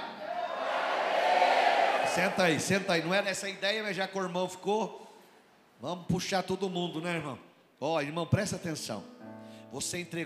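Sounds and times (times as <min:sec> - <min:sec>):
crowd shouting a cry of glory: 0:00.0 - 0:02.6
speech: 0:02.2 - 0:05.0, 0:05.8 - 0:09.1, 0:09.7 - 0:10.2.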